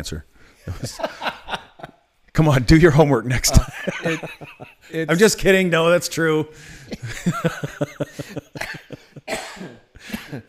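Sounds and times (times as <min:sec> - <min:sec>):
speech: 0:00.0 - 0:01.4, 0:02.4 - 0:08.8
laughter: 0:00.7 - 0:02.0, 0:03.4 - 0:05.4, 0:06.7 - 0:09.3
person coughing into the microphone: 0:08.2 - 0:10.4.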